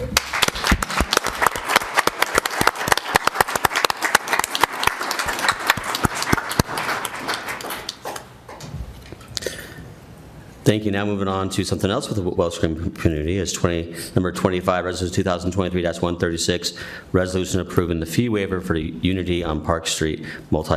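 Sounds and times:
group round of applause: 0.0 - 8.6
speech: 10.6 - 20.7.

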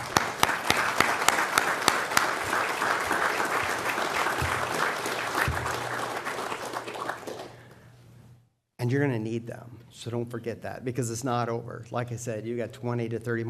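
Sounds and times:
audience applause: 0.0 - 7.7
speech: 8.9 - 13.4.

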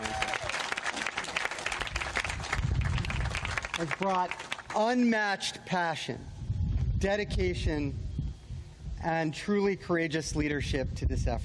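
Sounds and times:
audience applause at a community event in a park: 0.0 - 4.8
speech: 3.8 - 6.4, 7.0 - 8.0, 9.0 - 11.4.

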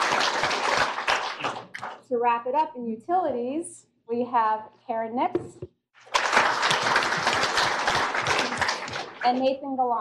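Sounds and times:
audience applause at a Northport city welcome for new staff: 0.0 - 2.0, 6.0 - 9.3
speech: 2.1 - 5.7, 9.2 - 9.9.

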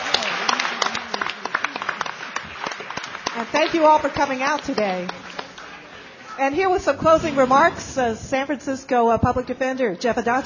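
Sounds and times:
audience applause: 0.0 - 6.2
speech: 3.4 - 5.2, 6.4 - 10.4.

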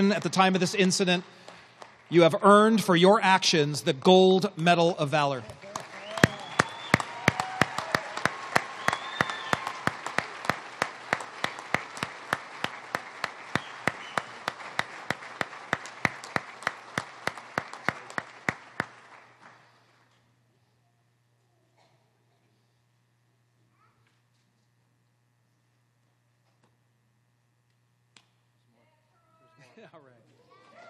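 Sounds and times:
speech: 0.0 - 1.4, 2.1 - 5.6
audience applause: 0.0 - 2.8, 5.4 - 19.8
sharp evenly spaced claps: 0.0 - 3.2, 5.1 - 19.7.

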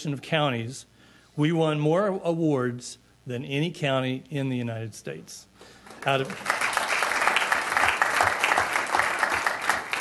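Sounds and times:
speech: 0.0 - 6.6
audience applause: 5.9 - 9.9.

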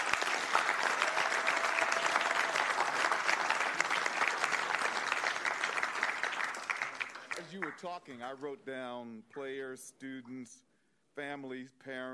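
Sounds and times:
audience applause: 0.0 - 7.9
speech: 7.7 - 12.1.

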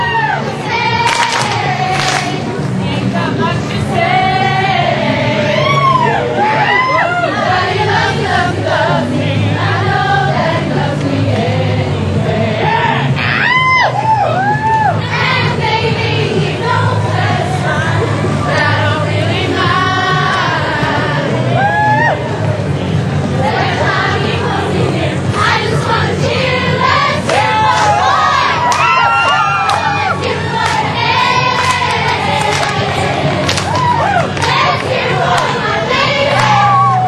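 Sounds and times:
audience whoops and shouts for a youth theater group: 0.0 - 0.5, 5.5 - 7.4, 13.2 - 15.0, 21.5 - 22.3, 27.5 - 30.2, 33.6 - 34.4, 36.4 - 37.0
crowd hubbub: 0.0 - 37.0.

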